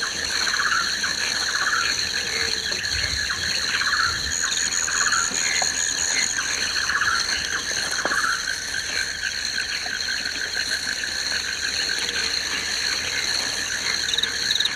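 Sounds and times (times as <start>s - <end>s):
rainforest ambience: 0.0s - 14.7s.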